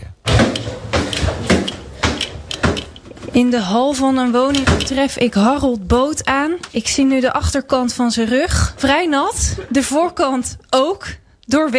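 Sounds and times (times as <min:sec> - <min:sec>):
clunks and scraping knocks from installing an air conditioner indoor unit: 0:00.3 - 0:05.2
speech: 0:03.4 - 0:11.7.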